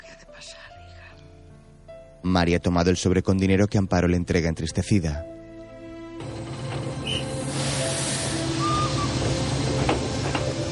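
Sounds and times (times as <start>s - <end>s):
speech: 2.2s - 5.3s
train pulling in: 6.2s - 10.7s
train brake squeals: 6.5s - 10.7s.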